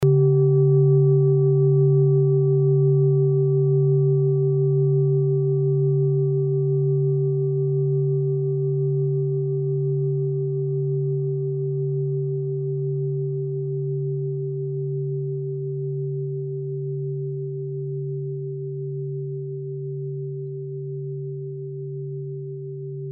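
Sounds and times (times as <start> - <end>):
Orissa singing bowl: 0.0 - 23.1.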